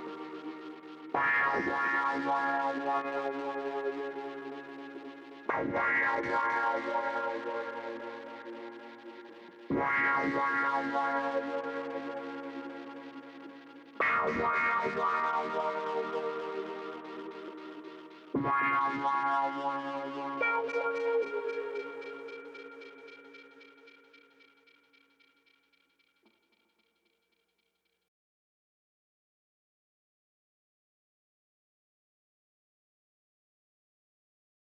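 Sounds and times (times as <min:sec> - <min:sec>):
clavinet with tape delay: 0:00.0 - 0:13.0, 0:14.0 - 0:25.6.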